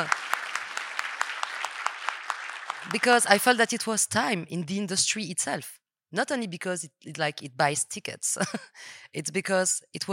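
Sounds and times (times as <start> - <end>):
speech: 0.0 - 0.2, 2.8 - 10.1
audience applause: 0.0 - 3.4.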